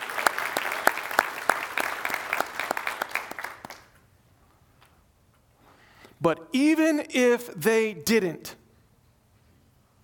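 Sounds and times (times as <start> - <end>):
audience applause: 0.0 - 4.0
speech: 6.2 - 8.6.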